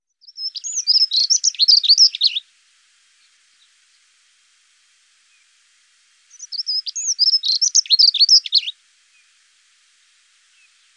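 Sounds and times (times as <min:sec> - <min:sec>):
dunnock song warble: 0:00.2 - 0:02.4, 0:06.3 - 0:09.3.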